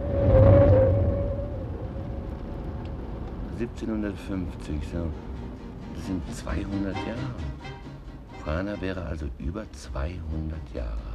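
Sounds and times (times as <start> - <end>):
car engine droning as the car drives around a curve in a radio drama: 0.0 - 7.2
speech: 3.6 - 5.4, 6.0 - 7.8, 8.4 - 11.1.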